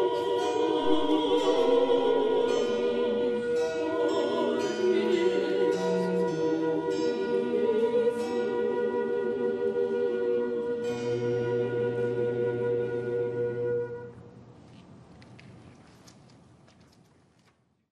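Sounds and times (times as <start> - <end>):
two sopranos singing an aria: 0.0 - 14.0.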